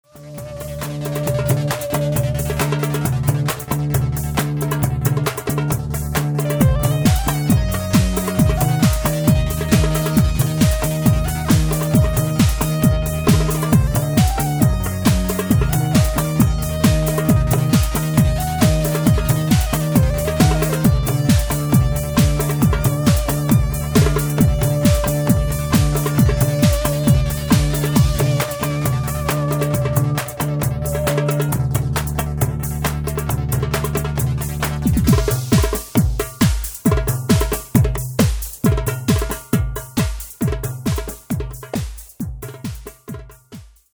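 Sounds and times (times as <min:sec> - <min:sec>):
drumming: 0:00.0 - 0:43.9.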